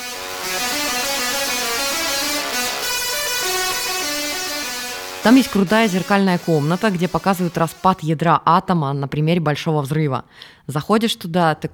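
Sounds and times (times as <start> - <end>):
musical Tesla coil playing a tune: 0.0 - 8.1
speech: 5.2 - 11.7.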